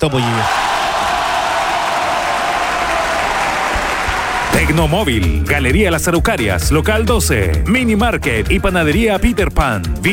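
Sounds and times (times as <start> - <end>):
speech: 0.0 - 0.7, 4.6 - 10.1
audience applause: 0.0 - 4.7.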